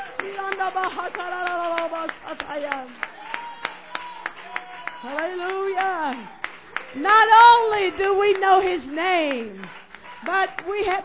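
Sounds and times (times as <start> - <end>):
audience clapping hands: 0.0 - 11.0
speech: 0.2 - 3.1, 5.0 - 11.0.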